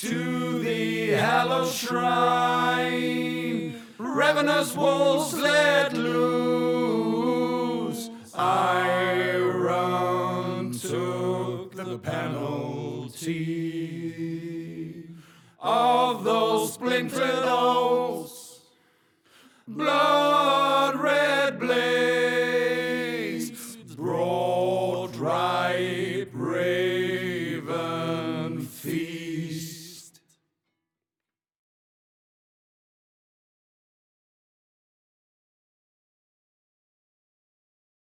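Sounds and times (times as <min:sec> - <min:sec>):
chorus singing in English: 0:00.0 - 0:18.6, 0:19.7 - 0:30.1.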